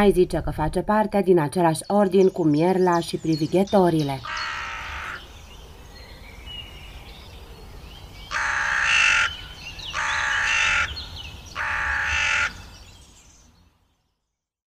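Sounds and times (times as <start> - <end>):
speech: 0.0 - 4.6
Hooded Crow cawing: 4.2 - 5.3, 8.3 - 11.0, 11.6 - 12.7.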